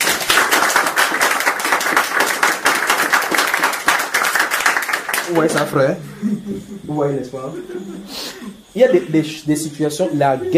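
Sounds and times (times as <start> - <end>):
audience applauding: 0.0 - 5.8
speech: 5.3 - 10.5
laughter: 5.6 - 10.5.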